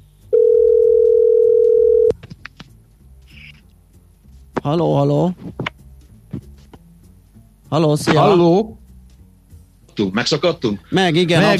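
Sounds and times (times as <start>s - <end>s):
phone redialing clicks and blips: 0.4s - 2.1s
telephone dial tone: 0.4s - 2.1s
speech: 4.7s - 5.7s, 7.7s - 8.8s, 10.0s - 11.5s.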